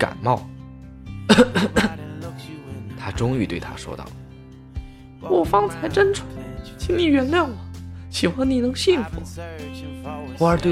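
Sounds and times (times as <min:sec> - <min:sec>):
speech: 0:00.0 - 0:00.6, 0:01.4 - 0:02.0, 0:03.1 - 0:04.2, 0:05.2 - 0:10.7
coughing: 0:01.3 - 0:02.1.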